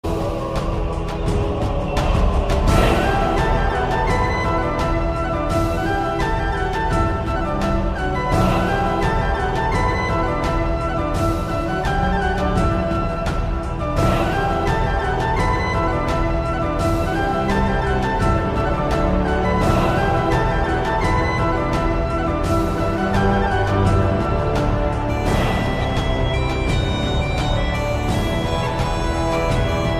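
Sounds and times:
Celtic ringtone music: 0.1 - 29.9.

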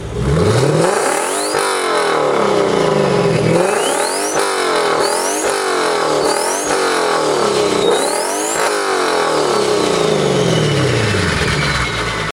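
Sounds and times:
Lexus twin turbo car engine: 0.0 - 12.3.

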